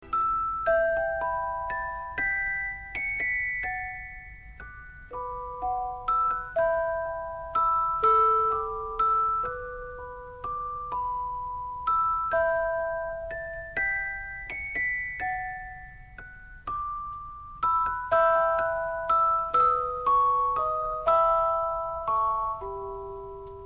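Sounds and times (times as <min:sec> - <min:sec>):
classical music: 0:00.0 - 0:23.6.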